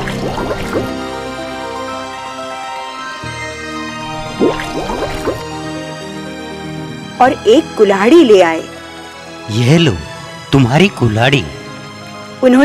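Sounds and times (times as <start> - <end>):
water splashing from a dive: 0.0 - 1.7, 4.1 - 5.6
musical drone: 0.0 - 12.6
speech: 7.2 - 8.7, 9.5 - 11.6, 12.4 - 12.6.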